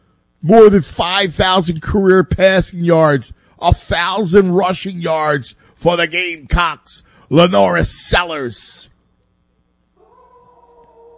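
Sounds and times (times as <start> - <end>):
speech: 0.4 - 8.9
dog howling: 10.0 - 11.1.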